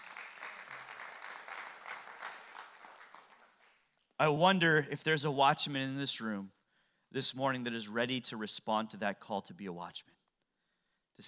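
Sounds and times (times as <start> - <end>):
crowd clapping: 0.0 - 4.1
speech: 4.2 - 10.2.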